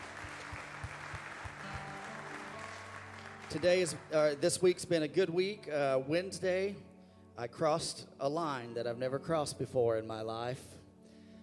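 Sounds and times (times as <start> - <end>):
audience clapping hands in welcome: 0.0 - 4.7
speech: 3.5 - 10.8.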